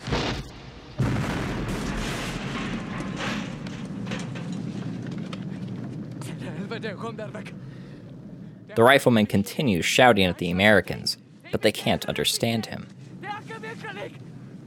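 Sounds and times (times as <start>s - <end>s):
grenade exploding and destroying a helicopter: 0.0s - 7.9s
speech: 6.8s - 7.6s, 8.8s - 13.0s.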